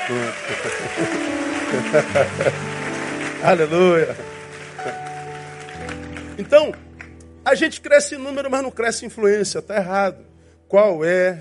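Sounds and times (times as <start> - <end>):
laughter: 0.0 - 2.8
audience applause: 0.0 - 7.2
speech: 0.1 - 2.8, 3.4 - 5.0, 6.4 - 6.8, 7.5 - 11.3.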